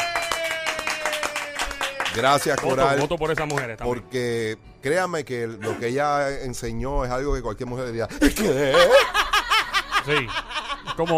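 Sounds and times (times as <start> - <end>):
hand clapping: 0.0 - 4.0
speech: 2.1 - 9.2, 10.0 - 11.1
laughter: 8.2 - 11.1.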